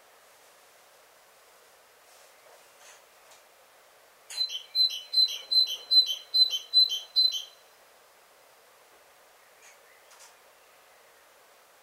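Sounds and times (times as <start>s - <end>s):
great tit calling: 4.3s - 7.7s.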